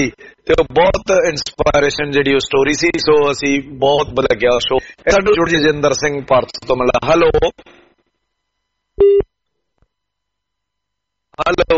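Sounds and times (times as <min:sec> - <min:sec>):
speech: 0:00.0 - 0:07.8, 0:09.0 - 0:09.3, 0:11.4 - 0:11.7
telephone line tone while caller is put on hold: 0:09.0 - 0:09.2.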